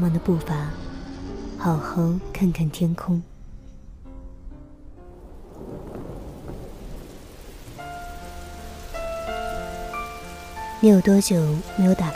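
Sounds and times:
speech: 0.0 - 0.8, 1.6 - 3.3, 10.8 - 12.1
thunder: 5.1 - 10.8
rain falling on leaves: 5.2 - 12.1.

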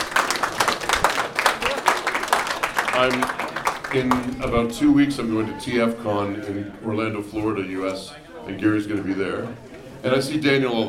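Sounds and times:
audience applause: 0.0 - 4.4
speech: 3.0 - 10.8.

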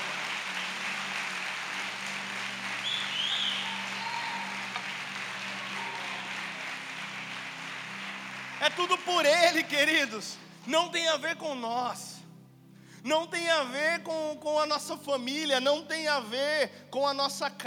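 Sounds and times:
audience applause: 0.0 - 10.1
speech: 8.6 - 12.1, 13.0 - 17.6.

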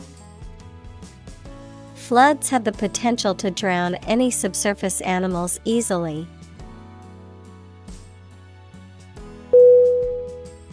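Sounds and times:
speech: 2.1 - 6.4
short high-pitched electronic beep: 9.6 - 10.4.

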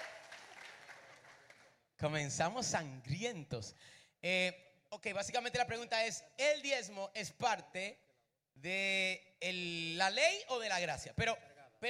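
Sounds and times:
audience applause: 0.0 - 1.7
speech: 2.0 - 8.0, 8.6 - 11.8.

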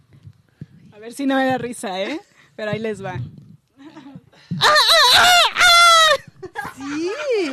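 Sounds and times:
speech: 1.0 - 3.4, 4.5 - 5.7, 6.8 - 7.5
person imitating a rooster crowing: 4.6 - 6.2.

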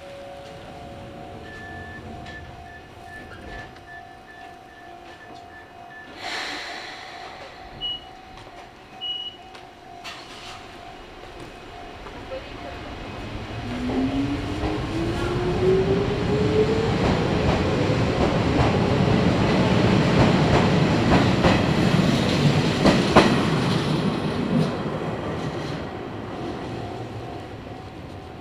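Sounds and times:
steady tone: 0.0 - 15.3
Izu-Hakone Railway Daiyuzan Line train rumble and wheel clatter: 0.0 - 28.3
short beeps: 1.2 - 6.2, 7.3 - 11.0.

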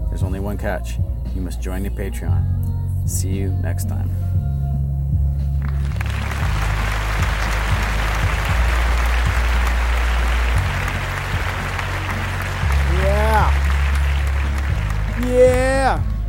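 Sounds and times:
speech: 0.2 - 4.4
applause: 5.6 - 16.2.

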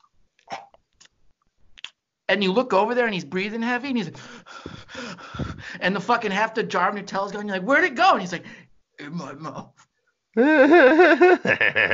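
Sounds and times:
voice imitating wet lip-smacking while eating banana: 0.4 - 2.0
speech: 2.3 - 5.2, 5.8 - 11.9
laughter: 10.4 - 11.9.

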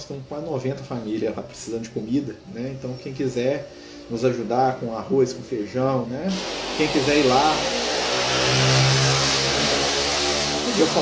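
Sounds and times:
speech: 0.0 - 7.9, 10.8 - 11.0
motorcycle passing: 7.4 - 11.0.

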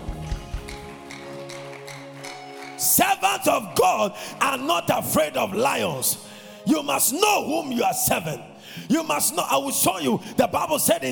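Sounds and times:
audience clapping: 0.0 - 5.0
speech: 2.8 - 11.1.

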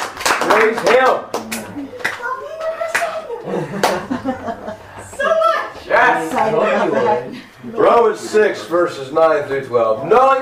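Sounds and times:
audience hand claps: 0.0 - 4.1
speech: 0.4 - 1.9, 6.0 - 10.4
laughter: 3.2 - 5.4, 6.2 - 7.9.

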